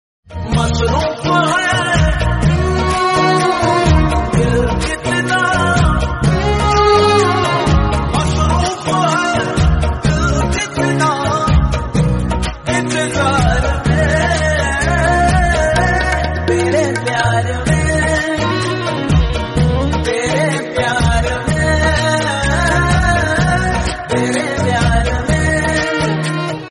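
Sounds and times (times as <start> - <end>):
romantic Hindi song: 0.3 - 26.6.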